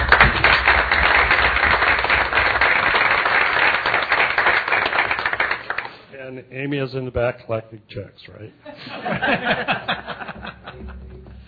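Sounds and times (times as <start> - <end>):
assembly applause: 0.0 - 6.1
speech: 6.7 - 10.2
laughter: 8.6 - 11.4.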